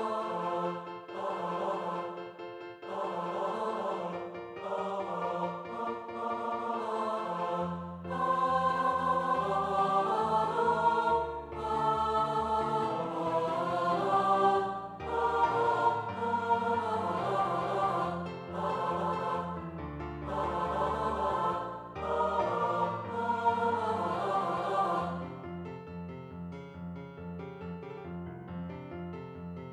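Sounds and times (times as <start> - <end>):
SATB choir singing: 0.0 - 25.4
piano: 0.0 - 29.7.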